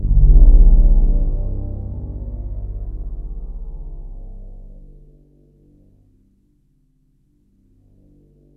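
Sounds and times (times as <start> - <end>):
Roland JV-1080 synthesizer sound: 0.0 - 5.2.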